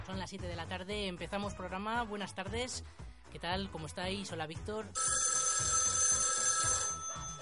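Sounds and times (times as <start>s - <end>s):
speech: 0.1s - 5.7s
telephone ringing with an incoming call to a radio station: 5.0s - 7.4s.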